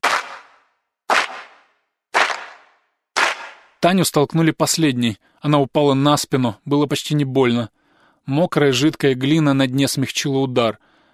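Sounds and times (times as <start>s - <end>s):
loud hand claps by a chanting crowd: 0.0s - 3.8s
speech: 3.8s - 10.9s.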